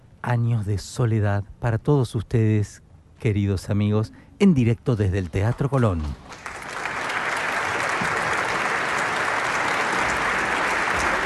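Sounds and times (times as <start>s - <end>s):
speech: 0.3s - 6.5s
theater audience applause at Teatro Colón: 6.3s - 11.2s.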